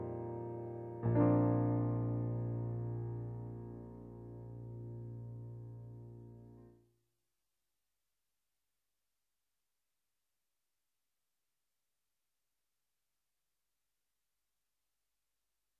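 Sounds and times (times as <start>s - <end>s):
piano: 0.0s - 6.8s.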